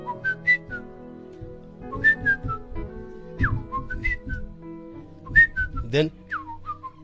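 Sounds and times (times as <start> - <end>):
person whistling a bird's melody: 0.0 - 0.9, 1.8 - 2.7, 3.4 - 4.5, 5.2 - 7.0
speech: 5.9 - 6.2.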